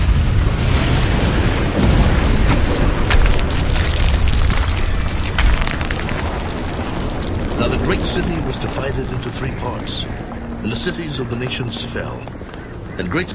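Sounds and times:
thunder effect: 0:00.0 - 0:10.6
earthquake rumble effect: 0:00.0 - 0:13.3
speech: 0:07.9 - 0:12.4, 0:13.0 - 0:13.3.

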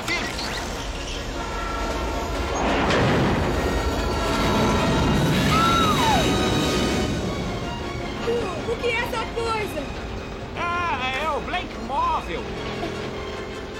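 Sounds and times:
train high squeal: 0:00.6 - 0:07.4
train number 13 arriving at a station: 0:00.6 - 0:13.7.

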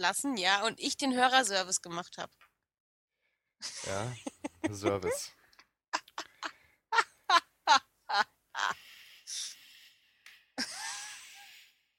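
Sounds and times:
speech: 0:00.0 - 0:02.5, 0:03.6 - 0:05.4, 0:07.7 - 0:08.8
loud breathing into the microphone: 0:08.8 - 0:10.2.

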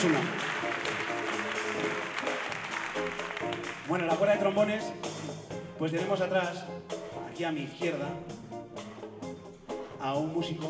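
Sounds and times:
speech: 0:00.0 - 0:00.4, 0:03.9 - 0:05.1, 0:05.8 - 0:08.5, 0:10.0 - 0:10.6
audience applauding at a concert in a theatre: 0:00.0 - 0:04.2.

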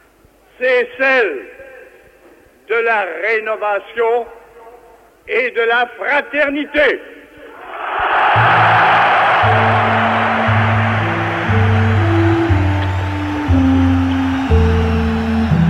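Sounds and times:
speech: 0:00.6 - 0:01.6, 0:02.7 - 0:04.4, 0:05.3 - 0:07.2
huge enthusiastic crowd roaring and cheering wildly: 0:07.5 - 0:15.6
chant-like sustained tones: 0:08.3 - 0:15.6.

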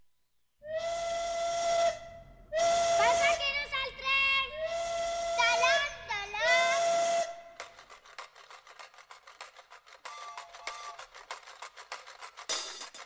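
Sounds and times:
steam train whistle blasts: 0:00.7 - 0:03.4, 0:04.5 - 0:07.6.

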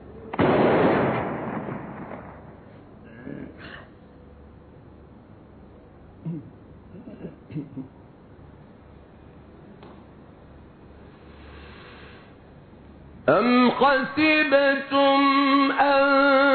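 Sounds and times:
cannon firing: 0:00.3 - 0:02.8
speech: 0:13.8 - 0:16.5.

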